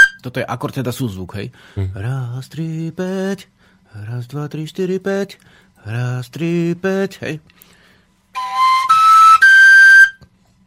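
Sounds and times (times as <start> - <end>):
folk flute playing a major scale: 0.0 - 0.2, 8.3 - 10.3
speech: 0.2 - 7.8.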